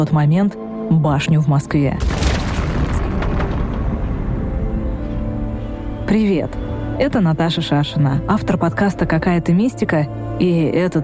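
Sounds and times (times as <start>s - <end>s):
speech: 0.0s - 2.2s, 6.1s - 11.0s
thunder: 2.0s - 5.2s.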